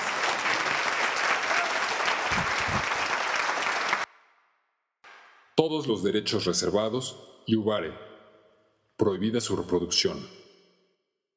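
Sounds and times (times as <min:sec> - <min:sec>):
crowd applause: 0:00.0 - 0:04.1
speech: 0:05.6 - 0:08.1, 0:09.0 - 0:10.4.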